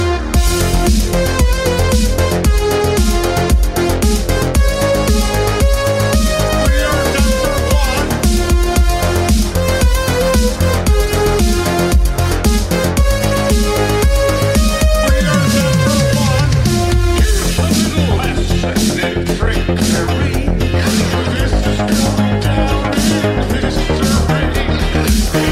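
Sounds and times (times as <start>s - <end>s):
synth: 0.0s - 25.5s.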